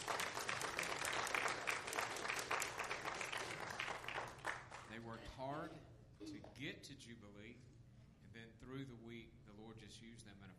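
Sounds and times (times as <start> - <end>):
audience applauding the choir: 0.0 - 5.0
speech: 5.0 - 7.8, 8.4 - 10.5.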